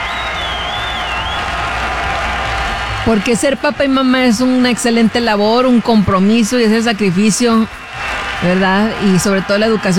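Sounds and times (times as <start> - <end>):
high whistle: 0.0 - 3.3
audience applause honouring mothers and fathers: 0.0 - 9.9
speech: 3.1 - 7.8, 8.4 - 9.9.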